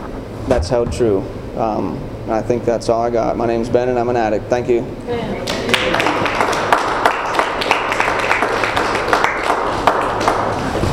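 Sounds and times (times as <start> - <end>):
speech: 0.5 - 6.2
applause: 5.4 - 10.8.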